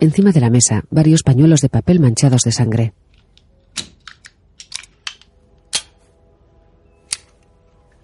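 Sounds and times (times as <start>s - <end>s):
speech: 0.0s - 3.0s
cartridges clicking into a pistol magazine at a desk: 3.3s - 6.0s, 7.1s - 7.5s.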